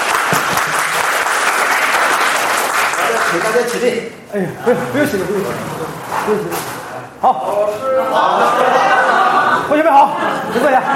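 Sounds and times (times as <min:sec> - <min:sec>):
audience applause welcoming a teacher at a gathering of friends: 0:00.0 - 0:03.9
speech: 0:03.1 - 0:10.9
laughter: 0:07.7 - 0:10.9.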